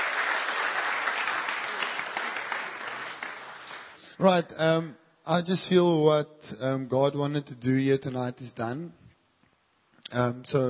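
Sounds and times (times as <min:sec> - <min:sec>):
audience applause: 0:00.0 - 0:04.1
speech: 0:04.2 - 0:09.0, 0:10.1 - 0:10.6.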